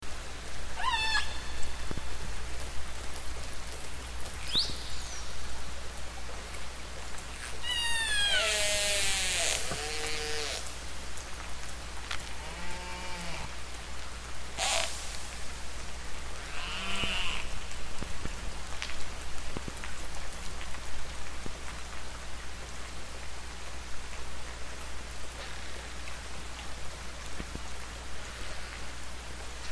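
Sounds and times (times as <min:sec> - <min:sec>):
low rumble and hiss: 0:00.0 - 0:29.7
killer whale calls: 0:00.8 - 0:01.4, 0:07.6 - 0:10.7, 0:14.6 - 0:14.9, 0:16.5 - 0:17.5.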